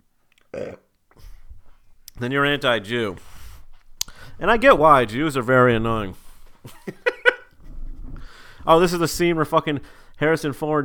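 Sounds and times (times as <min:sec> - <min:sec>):
burp: 0:00.5 - 0:01.0
speech: 0:02.2 - 0:03.3, 0:04.4 - 0:07.0, 0:08.7 - 0:10.8
laughter: 0:06.6 - 0:07.7.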